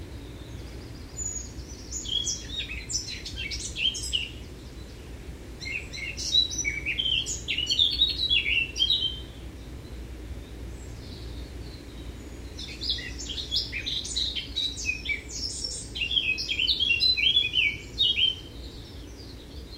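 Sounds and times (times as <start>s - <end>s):
Eurasian blackcap Sylvia atricapilla song of fast scratchy varied warbling: 0.0s - 19.7s.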